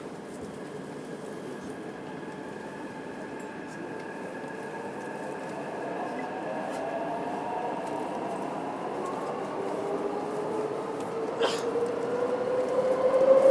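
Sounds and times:
Taipei Metro Tamsui line train rumbling along the track: 0.0 - 13.4
rising and falling train whines: 5.6 - 13.4.

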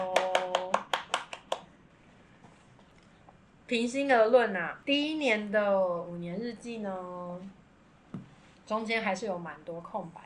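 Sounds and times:
person clapping hands: 0.0 - 1.7
speech: 3.7 - 7.6, 8.7 - 10.2.

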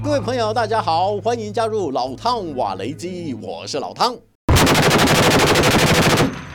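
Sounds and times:
speech: 0.2 - 4.3
machine gun fire from a Ukrainian border guard maritime unit drill in the Black Sea: 4.5 - 6.5.

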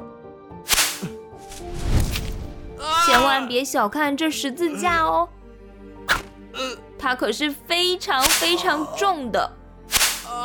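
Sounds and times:
whip lashing: 0.7 - 1.1, 6.1 - 6.3, 8.2 - 8.5, 9.9 - 10.3
speech: 3.1 - 5.4, 6.6 - 9.6.

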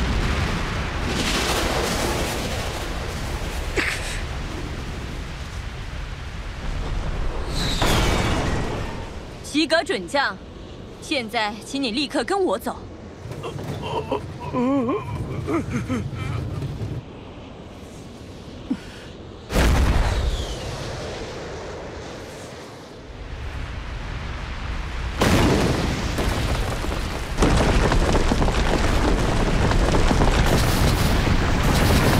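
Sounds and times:
powerful explosions: 0.0 - 9.5, 19.5 - 22.0, 24.7 - 32.1
speech: 9.6 - 12.9, 14.1 - 16.4.

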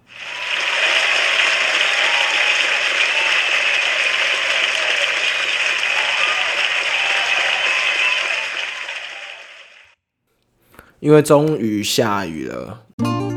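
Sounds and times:
enthusiastic applause: 0.0 - 9.9, 10.8 - 12.8
speech: 11.0 - 13.2.

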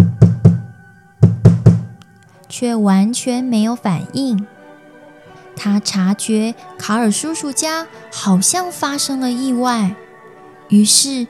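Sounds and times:
knocking on a door: 0.0 - 0.6, 1.2 - 1.9
speech: 2.5 - 4.6, 5.6 - 10.0, 10.7 - 11.2.

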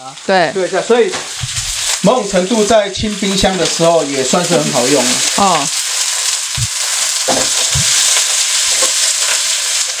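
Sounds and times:
noodles stir-frying in a wok: 0.0 - 9.9
speech: 0.1 - 5.8
spatula scraping thumps tossing food: 1.1 - 2.0, 6.5 - 8.9.

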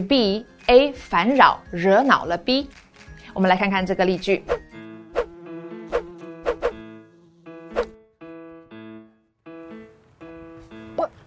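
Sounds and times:
speech: 0.0 - 2.8, 3.4 - 4.6
mosquitoes buzzing: 4.5 - 8.2.

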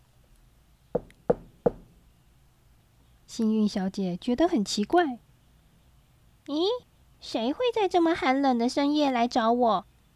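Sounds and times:
soft knocks on a door: 1.0 - 1.9
speech: 3.4 - 5.2, 6.5 - 9.9.

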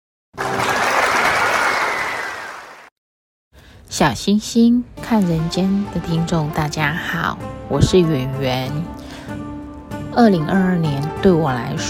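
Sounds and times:
audience applause: 0.4 - 2.9
speech: 3.9 - 9.5, 10.1 - 11.8.

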